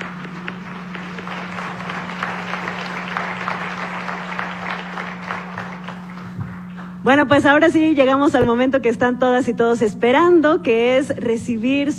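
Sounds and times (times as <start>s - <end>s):
audience applause: 0.0s - 6.8s
speech: 7.1s - 11.9s.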